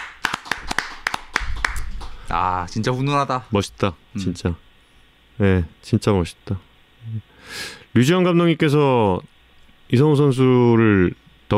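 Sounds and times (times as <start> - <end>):
hand claps: 0.0 - 2.4
speech: 2.3 - 4.7, 5.4 - 9.3, 9.9 - 11.5.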